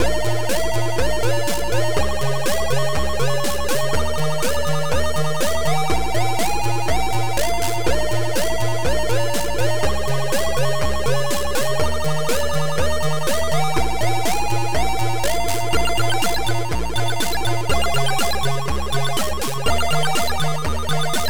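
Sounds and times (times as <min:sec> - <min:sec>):
techno music: 0:00.0 - 0:21.2.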